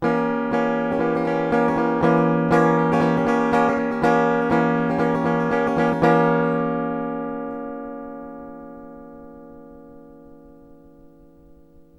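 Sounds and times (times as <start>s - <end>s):
rhythmic chords: 0.0s - 8.7s.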